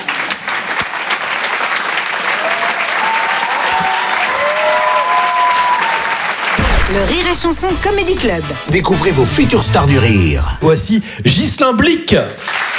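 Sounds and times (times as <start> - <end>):
audience applause: 0.0 - 6.6, 12.4 - 12.7
speech: 6.9 - 12.6.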